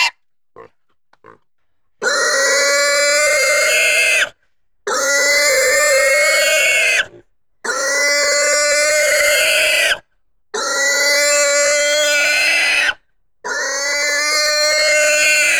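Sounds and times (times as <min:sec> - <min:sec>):
pig squealing: 0:02.0 - 0:04.3, 0:04.9 - 0:07.1, 0:07.7 - 0:10.0, 0:10.6 - 0:15.5.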